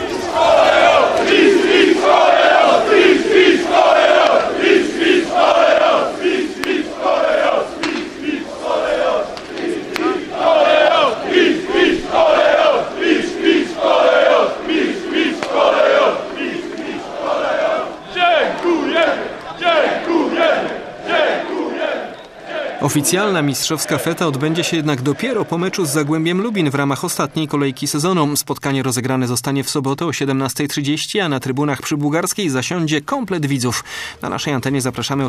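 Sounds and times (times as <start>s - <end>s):
football fans shouting: 0.0s - 26.2s
football fans chanting outside stadium: 0.0s - 27.5s
speech: 22.9s - 35.2s.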